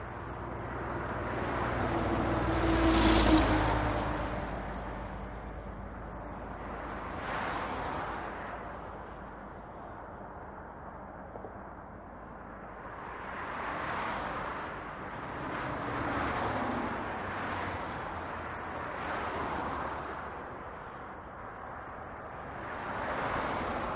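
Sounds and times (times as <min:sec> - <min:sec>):
traffic: 0:00.0 - 0:23.9.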